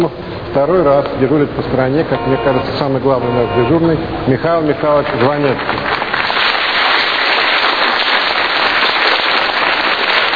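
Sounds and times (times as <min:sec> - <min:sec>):
speech: 0:00.0 - 0:06.0
audience applause: 0:04.8 - 0:10.3.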